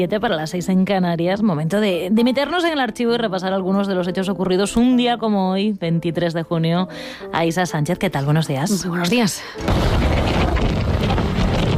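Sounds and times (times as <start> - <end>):
speech: 0.0 - 11.2
wind roaring: 9.6 - 11.7.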